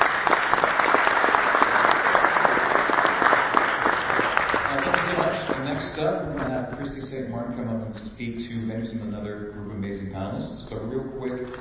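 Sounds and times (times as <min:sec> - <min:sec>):
audience applause: 0:00.0 - 0:06.7
speech: 0:06.2 - 0:11.5.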